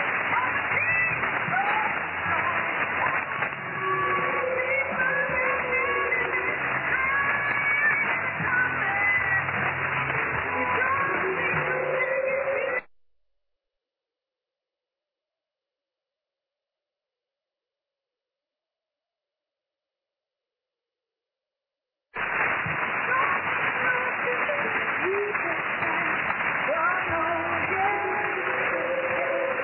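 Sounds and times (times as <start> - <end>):
shortwave pirate radio: 0.0 - 12.9, 22.2 - 29.6.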